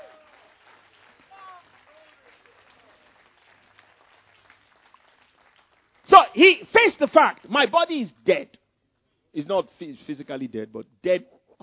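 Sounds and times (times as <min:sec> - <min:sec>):
audience applause: 0:00.0 - 0:07.5
speech: 0:06.4 - 0:08.6, 0:09.3 - 0:11.6.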